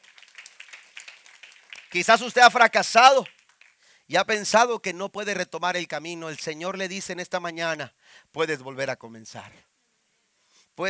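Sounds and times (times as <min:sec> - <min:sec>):
audience applause: 0:00.0 - 0:03.8
speech: 0:01.9 - 0:03.4, 0:04.1 - 0:09.7.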